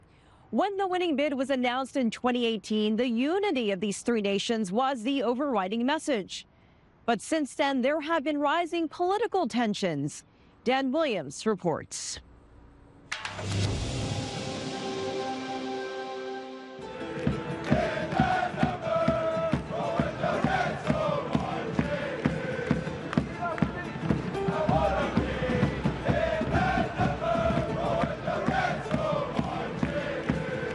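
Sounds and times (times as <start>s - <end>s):
speech: 0.5s - 6.5s, 7.1s - 12.3s
sustained tonal drone: 13.2s - 17.4s
Toronto FC fans crowd noise at home match: 16.8s - 30.7s
steady rhythmic thumps: 16.8s - 30.7s.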